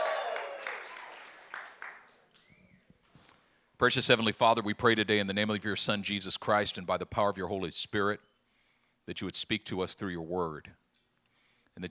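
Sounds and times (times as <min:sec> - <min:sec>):
audience hand clapping: 0:00.0 - 0:02.5
speech: 0:03.8 - 0:08.3, 0:09.1 - 0:10.8.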